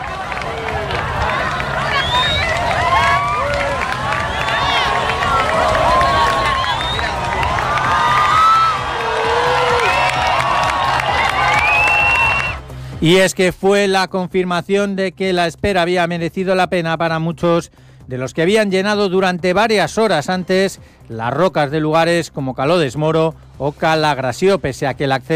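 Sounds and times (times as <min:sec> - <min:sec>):
large outdoor crowd applauding: 0:00.0 - 0:12.8
speech: 0:13.0 - 0:25.3.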